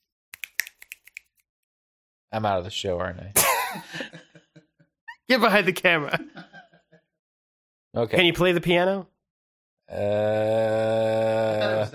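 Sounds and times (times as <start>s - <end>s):
finger snapping: 0.3s - 1.3s
speech: 2.3s - 4.5s, 5.3s - 6.5s, 7.9s - 9.1s, 9.9s - 11.9s.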